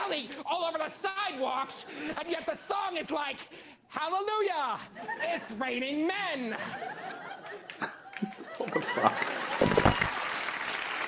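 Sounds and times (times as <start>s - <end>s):
speech: 0.1s - 10.0s
laughter: 4.8s - 10.1s
audience applause: 7.6s - 11.0s.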